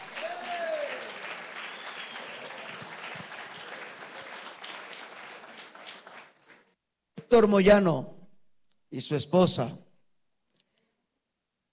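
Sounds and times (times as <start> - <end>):
loud audience applause: 0.0 - 6.8
speech: 7.3 - 8.1, 9.0 - 9.8.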